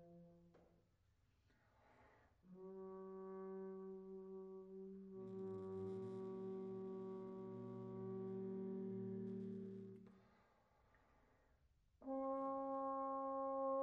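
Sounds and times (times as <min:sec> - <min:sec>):
trombone exercise: 0:02.6 - 0:10.0, 0:12.0 - 0:13.8.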